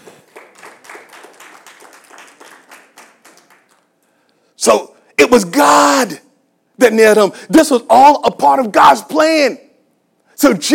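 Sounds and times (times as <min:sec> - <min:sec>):
audience clapping in praise: 0:00.0 - 0:04.2
speech: 0:04.6 - 0:06.2, 0:06.8 - 0:09.6, 0:10.4 - 0:10.7.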